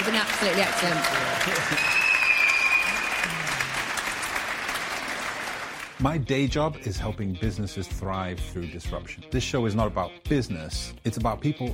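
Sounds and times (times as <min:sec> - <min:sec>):
live audience clapping: 0:00.0 - 0:06.2
speech: 0:00.2 - 0:02.0, 0:06.0 - 0:11.7.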